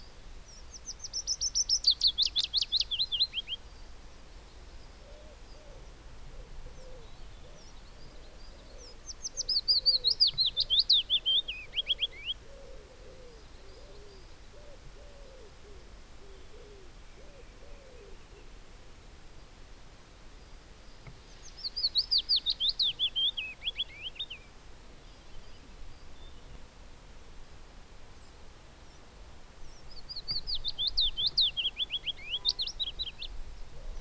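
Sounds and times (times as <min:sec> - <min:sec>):
Willow Warbler Phylloscopus trochilus trochilus: 0:00.0 - 0:03.7, 0:06.8 - 0:12.4, 0:20.9 - 0:26.6, 0:29.7 - 0:33.9.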